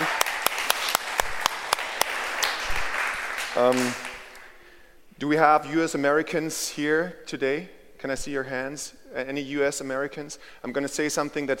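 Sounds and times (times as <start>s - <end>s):
audience applause: 0.0s - 4.5s
speech: 3.6s - 4.1s, 5.2s - 11.5s.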